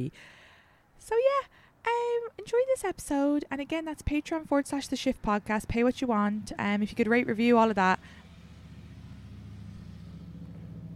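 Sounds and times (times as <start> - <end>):
speech: 0.0 - 0.4, 1.0 - 8.2
motorcycle passing by: 5.1 - 10.9.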